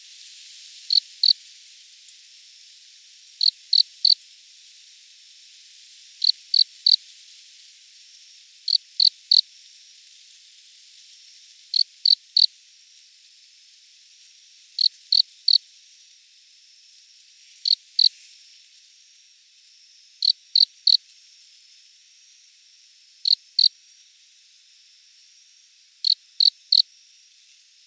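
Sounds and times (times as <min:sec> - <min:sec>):
hiss: 0:00.0 - 0:27.8
cricket chirping: 0:00.8 - 0:01.4, 0:02.5 - 0:05.5, 0:06.2 - 0:07.1, 0:07.9 - 0:10.1, 0:11.7 - 0:12.6, 0:13.8 - 0:18.2, 0:19.0 - 0:27.8.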